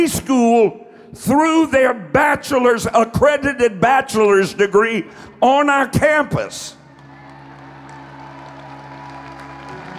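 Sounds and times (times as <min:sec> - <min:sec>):
speech: 0:00.0 - 0:06.8
audience applause: 0:06.9 - 0:09.9.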